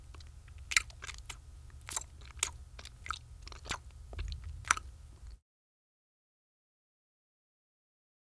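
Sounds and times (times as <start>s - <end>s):
monkey eating: 0.0s - 5.4s.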